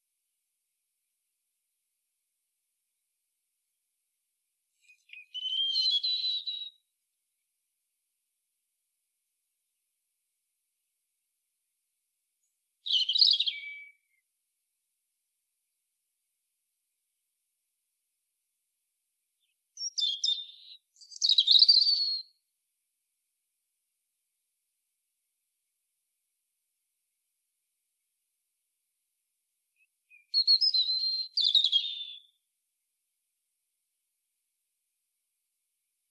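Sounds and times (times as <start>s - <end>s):
European robin song: 4.8s - 6.9s, 12.8s - 14.2s, 19.4s - 22.4s, 29.8s - 32.4s.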